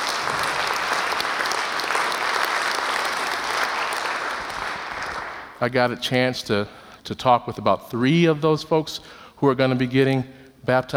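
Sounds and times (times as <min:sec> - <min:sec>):
large group applause: 0:00.0 - 0:05.7
speech: 0:05.6 - 0:10.9.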